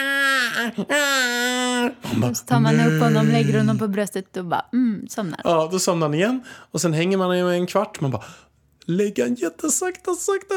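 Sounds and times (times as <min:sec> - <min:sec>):
voice imitating a baby's whimpering cry: 0:00.0 - 0:03.9
speech: 0:00.6 - 0:10.5.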